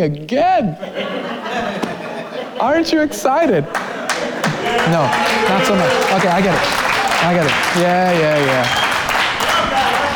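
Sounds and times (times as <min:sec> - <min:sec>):
speech: 0:00.0 - 0:01.9, 0:02.6 - 0:03.9, 0:04.6 - 0:08.9
laughter: 0:00.7 - 0:08.8
golf clap: 0:03.7 - 0:10.1.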